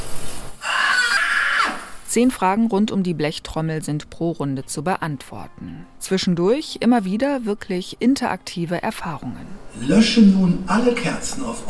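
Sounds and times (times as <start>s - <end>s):
person's high-pitched glass-shattering scream imitation: 0.6s - 2.0s
speech: 2.1s - 11.6s.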